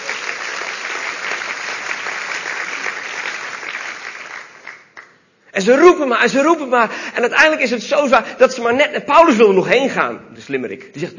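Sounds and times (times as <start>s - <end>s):
crowd applause: 0.0s - 5.1s
speech: 5.6s - 11.1s.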